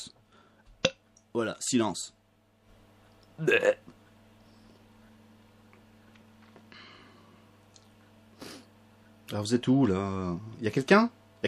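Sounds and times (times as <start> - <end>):
speech: 1.3 - 2.2, 3.4 - 4.0, 9.3 - 11.4
burp during a radio broadcast: 3.4 - 3.9.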